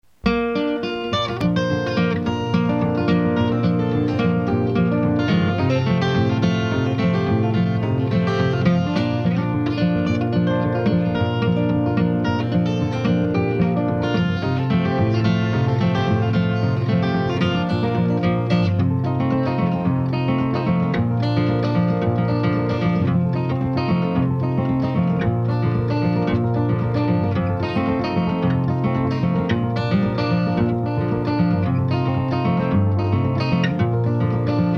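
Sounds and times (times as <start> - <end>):
Spanish fandango music: 0.1 - 34.7.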